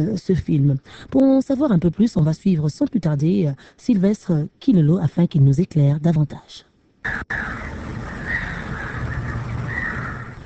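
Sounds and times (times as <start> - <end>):
speech: 0.0 - 7.8
hiss: 0.0 - 10.4
birdsong from a film soundtrack: 7.0 - 10.4.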